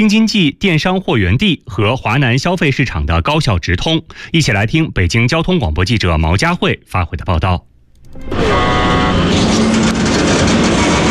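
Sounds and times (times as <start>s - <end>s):
speech: 0.0s - 10.7s
train horn as freight train departs Fengtai West station: 8.2s - 11.0s.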